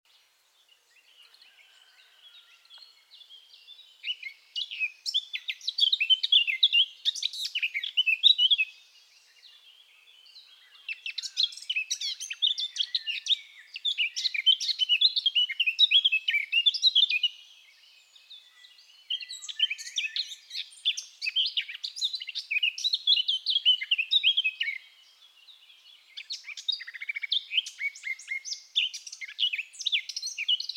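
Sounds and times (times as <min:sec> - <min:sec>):
Eurasian blackcap warbling song: 0:02.7 - 0:08.8, 0:10.8 - 0:17.5, 0:19.1 - 0:24.9, 0:26.1 - 0:30.7.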